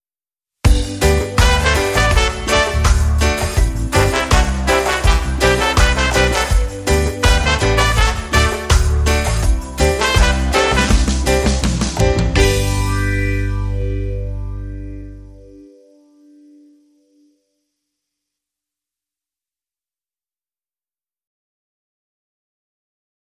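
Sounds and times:
relaxed siesta vibe music: 0.7 - 17.6.

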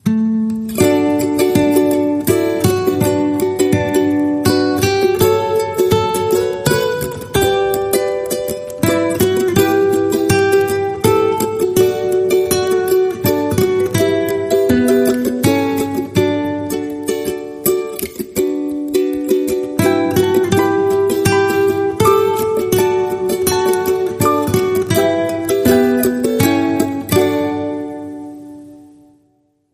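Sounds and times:
ukulele guitar: 0.0 - 29.7.

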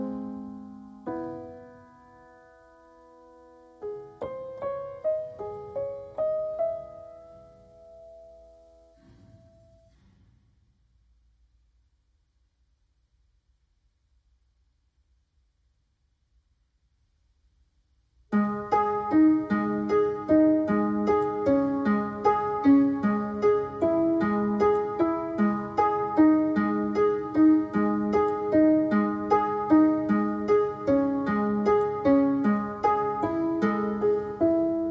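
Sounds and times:
pianos: 0.0 - 10.5, 18.3 - 34.9.

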